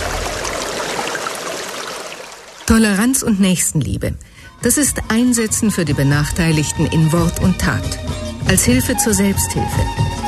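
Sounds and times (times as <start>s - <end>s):
rushing water from the pumping station of a new village water supply: 0.0s - 3.3s
speech: 2.7s - 10.2s.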